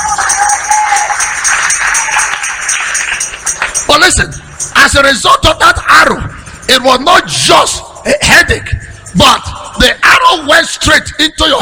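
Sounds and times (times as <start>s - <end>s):
crowd clapping: 0.0s - 4.7s
speech: 4.0s - 11.5s.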